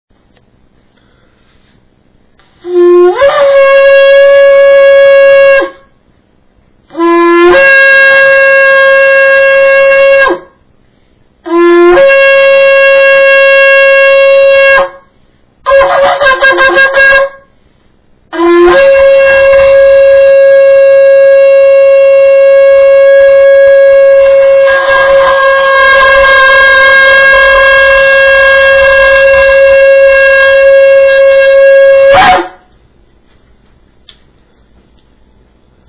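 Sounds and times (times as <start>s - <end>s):
shofar: 2.6s - 6.0s, 6.9s - 10.6s, 11.4s - 17.6s, 18.3s - 32.7s.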